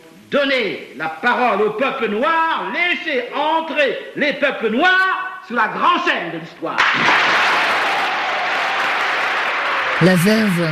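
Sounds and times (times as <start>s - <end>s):
speech: 0.3s - 7.4s, 10.0s - 10.6s
audience applause after a speech: 6.8s - 10.6s.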